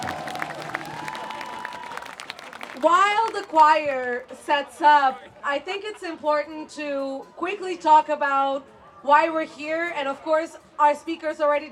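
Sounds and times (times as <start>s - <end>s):
audience clapping at a protest event in a concert hall: 0.0s - 4.2s
faint crowd noise: 0.0s - 11.7s
speech: 2.8s - 11.7s.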